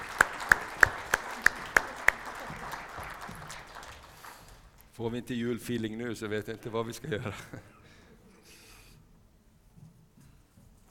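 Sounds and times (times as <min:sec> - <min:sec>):
crisp evenly spaced hand claps: 0:00.0 - 0:04.9
speech: 0:05.0 - 0:07.8.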